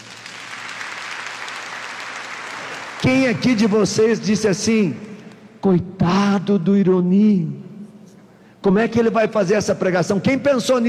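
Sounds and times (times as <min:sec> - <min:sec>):
church congregation applauding: 0:00.0 - 0:05.3
speech: 0:03.0 - 0:05.0, 0:05.6 - 0:07.6, 0:08.6 - 0:10.8.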